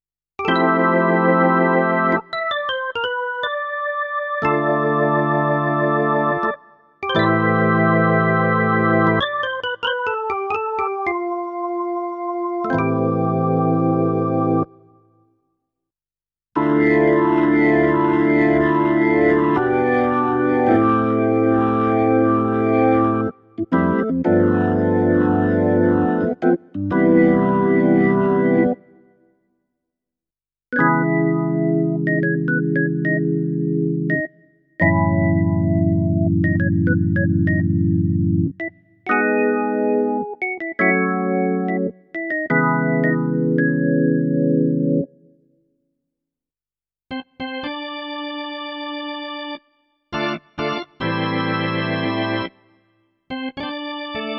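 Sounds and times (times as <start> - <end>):
PX-3 organ: 0.4 - 14.8, 16.6 - 28.9, 30.8 - 45.2, 47.1 - 52.6, 53.3 - 54.3.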